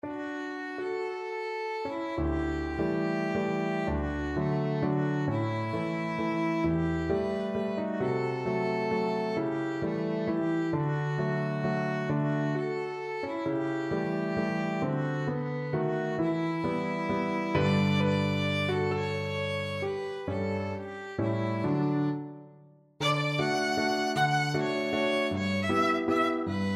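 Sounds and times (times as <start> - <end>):
violin playing a waltz: 0.0 - 26.7.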